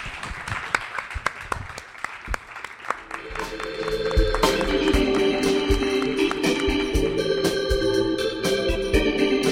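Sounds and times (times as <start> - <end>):
audience applause: 0.0 - 7.8
tonal sounds: 3.0 - 9.4.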